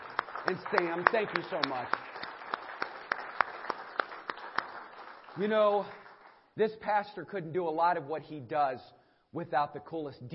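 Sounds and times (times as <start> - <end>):
audience round of applause: 0.0 - 6.4
speech: 0.4 - 2.2, 5.4 - 6.0, 6.6 - 10.3.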